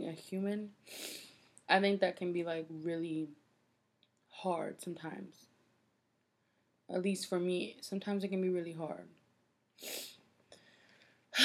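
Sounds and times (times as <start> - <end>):
speech: 0.2 - 3.4, 4.4 - 5.5, 6.9 - 9.2, 9.8 - 10.1
breathy sniffles through the nose: 0.9 - 1.3, 9.8 - 10.2.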